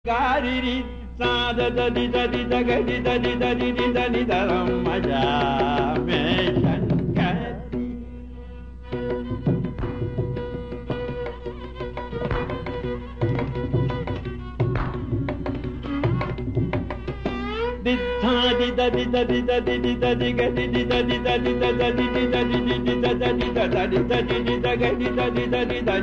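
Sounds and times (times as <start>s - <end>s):
swarakalpana vocal improvisation: 0.0s - 26.0s.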